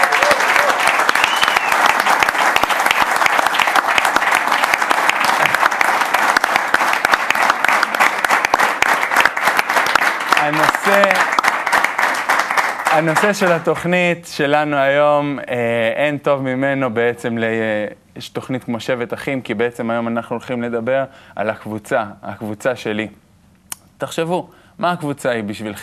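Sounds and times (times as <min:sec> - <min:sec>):
faint cheers: 0:00.0 - 0:02.0
audience applause for the band: 0:00.0 - 0:13.7
speech: 0:13.0 - 0:23.2, 0:24.0 - 0:25.8.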